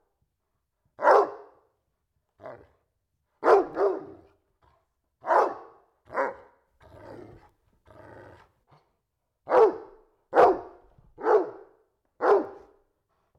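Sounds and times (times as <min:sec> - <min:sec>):
domestic dog barking indoors: 0:01.0 - 0:01.6, 0:03.4 - 0:04.3, 0:05.2 - 0:06.6, 0:09.5 - 0:12.8.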